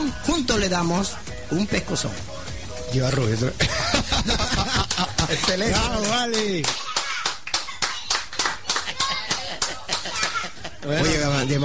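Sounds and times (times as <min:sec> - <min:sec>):
speech: 0:00.1 - 0:02.3, 0:02.9 - 0:04.4, 0:05.3 - 0:06.8, 0:10.8 - 0:11.6
laughter: 0:03.6 - 0:06.0, 0:08.8 - 0:11.2
audience applause: 0:04.9 - 0:10.5.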